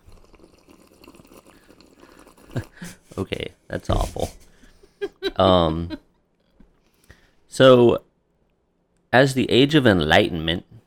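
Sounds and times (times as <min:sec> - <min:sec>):
taking a sip of a drink: 0:00.0 - 0:03.1
speech: 0:02.6 - 0:04.3, 0:05.4 - 0:06.0, 0:07.6 - 0:08.0, 0:09.2 - 0:10.7.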